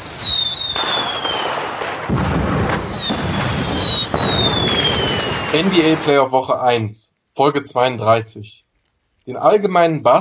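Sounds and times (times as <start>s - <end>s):
fireworks crackling and booming: 0.0s - 6.9s
speech: 5.5s - 8.6s, 9.3s - 10.1s.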